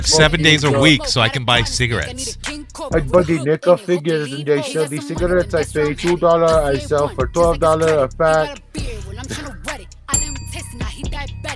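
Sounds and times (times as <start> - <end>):
speech: 0.0 - 9.4
bell being hit: 10.2 - 11.5.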